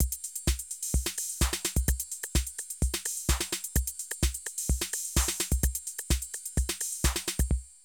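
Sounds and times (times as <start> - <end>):
Euro techno drum loops: 0.0 - 7.7.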